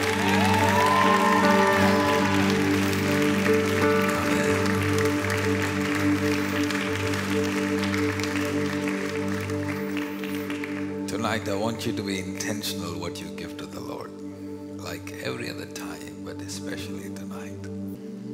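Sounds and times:
faint cheers: 0:00.0 - 0:03.2
audience clapping hands: 0:00.0 - 0:11.6
loud music with held keyboard-like chords: 0:00.0 - 0:18.3
speech: 0:11.4 - 0:13.7.

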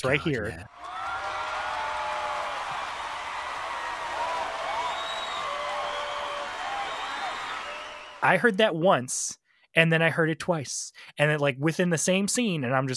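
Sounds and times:
speech: 0:00.0 - 0:01.0, 0:08.2 - 0:12.9
crowd cheering: 0:00.7 - 0:08.3
shrill whoops and whistles: 0:04.5 - 0:08.2.

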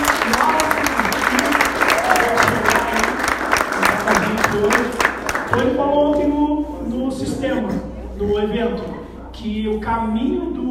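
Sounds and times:
audience applause: 0:00.0 - 0:05.7
faint murmur of voices: 0:00.0 - 0:10.6
speech: 0:06.8 - 0:10.6.

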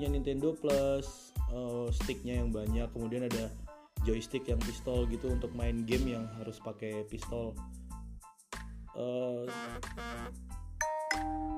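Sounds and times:
speech: 0:00.0 - 0:07.8, 0:09.0 - 0:10.6
phone WhatsApp message notification tone: 0:10.8 - 0:11.5.

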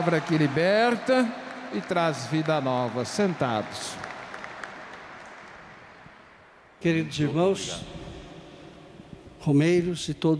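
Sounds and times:
speech: 0:00.0 - 0:04.1, 0:06.8 - 0:08.0, 0:09.4 - 0:10.3
audience applauding: 0:00.0 - 0:06.4.

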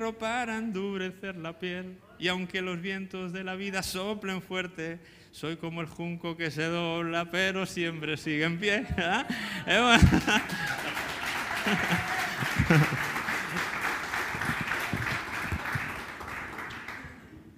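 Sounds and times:
speech: 0:00.1 - 0:11.0, 0:11.6 - 0:13.1
crowd applause after singing: 0:09.3 - 0:17.5
scattered chuckles: 0:11.7 - 0:13.3.

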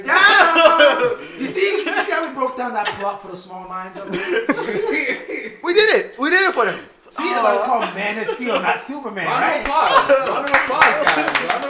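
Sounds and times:
laughter: 0:00.0 - 0:03.2, 0:04.0 - 0:06.0, 0:07.2 - 0:11.6
speech: 0:02.6 - 0:11.6
applause: 0:09.6 - 0:11.6.

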